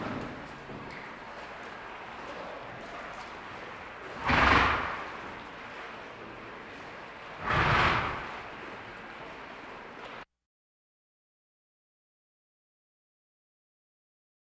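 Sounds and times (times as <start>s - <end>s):
farm animal snorts: 4.2s - 5.2s, 7.4s - 8.5s.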